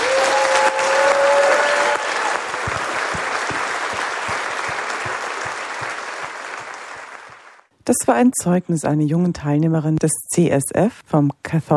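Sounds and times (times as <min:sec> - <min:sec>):
whistle or cheer: 0:00.0 - 0:02.3
audience applause: 0:00.0 - 0:07.7
speech: 0:07.9 - 0:11.7.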